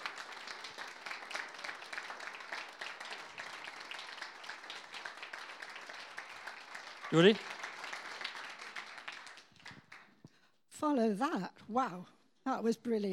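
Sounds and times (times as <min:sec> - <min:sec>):
audience applause: 0:00.0 - 0:10.2
speech: 0:07.1 - 0:07.5, 0:10.9 - 0:13.1.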